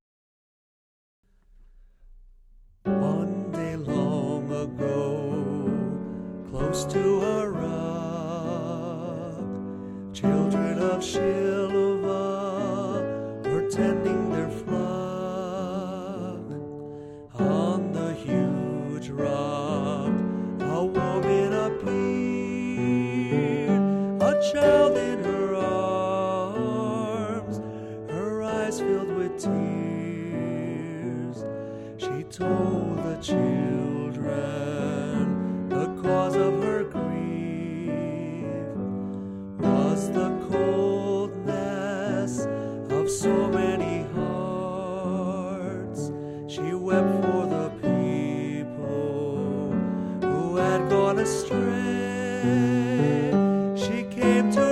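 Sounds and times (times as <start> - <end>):
hymn: 2.9 - 54.6.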